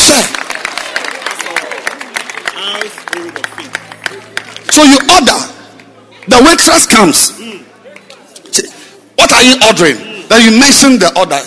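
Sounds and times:
audience clapping hands: 0:00.0 - 0:06.9
speech: 0:04.8 - 0:05.5, 0:06.3 - 0:07.4, 0:09.4 - 0:11.4.

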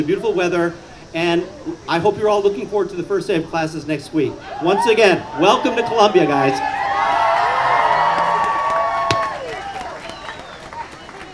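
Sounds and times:
speech: 0:00.0 - 0:07.2
crowd cheering and whooping at the Columbia College convocation: 0:04.4 - 0:11.3.

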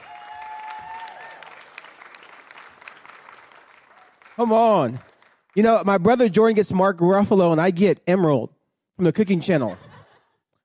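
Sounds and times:
church audience applauding to welcome a guest speaker: 0:00.0 - 0:06.0
speech: 0:04.4 - 0:09.9
laughter: 0:09.3 - 0:10.5.

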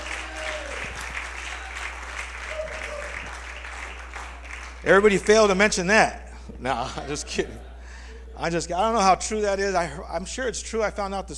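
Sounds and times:
audience applause: 0:01.1 - 0:04.8
speech: 0:04.8 - 0:07.7, 0:08.4 - 0:11.3.

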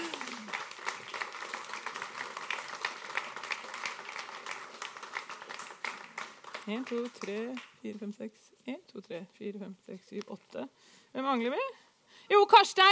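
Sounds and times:
audience clapping: 0:00.0 - 0:07.8
speech: 0:06.7 - 0:12.9.

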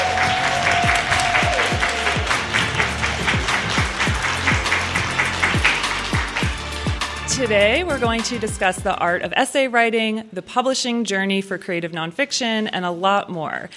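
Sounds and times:
live audience applauding at a writing conference in Cleveland: 0:00.0 - 0:07.4
speech: 0:07.4 - 0:13.7.

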